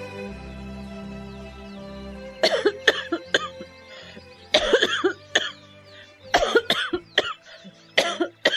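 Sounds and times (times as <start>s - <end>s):
persistent cough: 2.4s - 3.5s, 4.6s - 5.5s, 6.3s - 7.4s, 8.0s - 8.5s.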